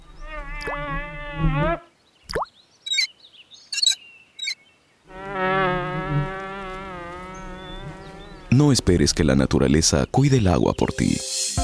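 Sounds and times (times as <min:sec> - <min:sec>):
bee buzzing: 0:00.0 - 0:01.9, 0:05.1 - 0:09.3
speech: 0:08.6 - 0:11.3.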